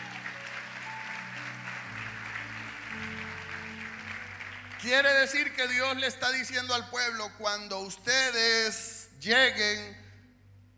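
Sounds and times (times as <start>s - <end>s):
audience applause: 0.0s - 6.2s
speech: 4.8s - 10.0s.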